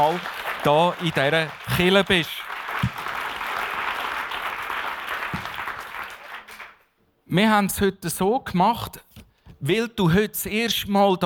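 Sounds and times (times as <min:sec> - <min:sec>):
speech: 0:00.0 - 0:02.5, 0:07.3 - 0:11.2
audience applauding: 0:00.0 - 0:06.9.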